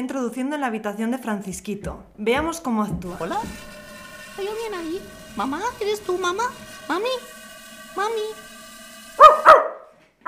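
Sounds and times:
speech: 0.0 - 3.8, 4.4 - 7.4, 8.0 - 8.5
puppy barking: 9.2 - 10.2.

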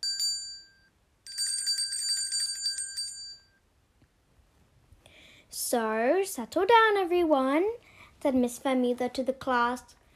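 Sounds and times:
school bell ringing: 0.0 - 3.6
speech: 5.5 - 10.0.

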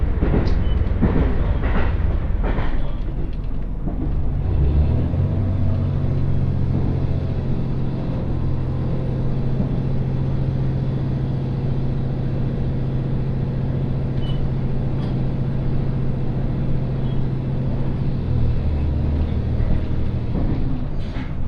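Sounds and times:
one-car GV-E400 hybrid train running on the Tsugaru Line: 0.0 - 21.4
knocks and clatters: 0.2 - 4.3.

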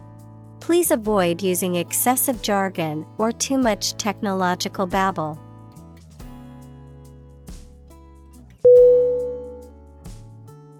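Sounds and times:
speech: 0.7 - 5.4
alarm signal beeping: 8.7 - 9.6.

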